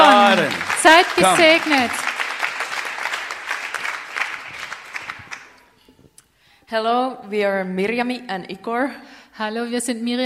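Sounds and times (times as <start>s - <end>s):
audience applause: 0.0s - 5.6s
speech: 1.2s - 2.1s, 6.7s - 10.2s.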